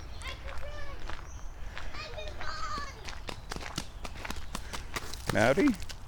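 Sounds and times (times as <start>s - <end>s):
distant children's voices playing outdoors: 0.2s - 3.4s
speech: 5.3s - 5.9s.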